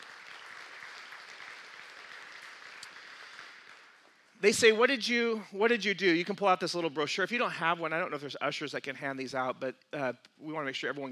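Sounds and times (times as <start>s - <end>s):
audience applause: 0.0s - 4.1s
speech: 4.4s - 11.1s.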